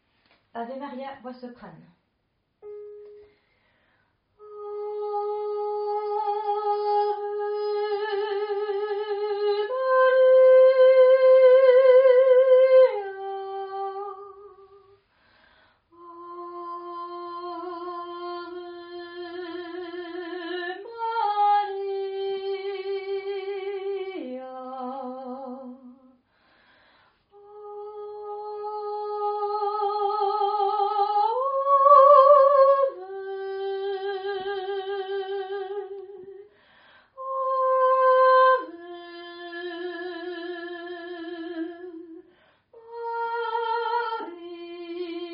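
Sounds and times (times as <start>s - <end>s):
soprano singing: 4.4s - 15.0s, 16.0s - 26.1s, 27.3s - 36.5s, 37.2s - 45.3s.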